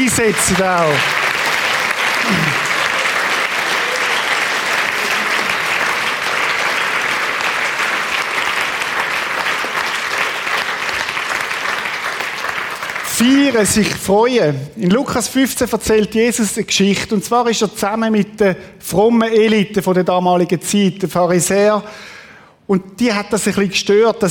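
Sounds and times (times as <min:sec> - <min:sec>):
audience applause: 0:00.0 - 0:13.7
speech: 0:00.1 - 0:01.2, 0:02.3 - 0:02.7, 0:13.2 - 0:24.2.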